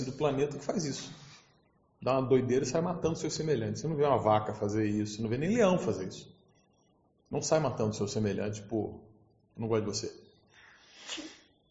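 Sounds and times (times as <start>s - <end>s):
speech: 0.0s - 1.2s, 2.0s - 6.4s, 7.3s - 10.2s, 11.0s - 11.4s
sneeze: 11.0s - 11.4s.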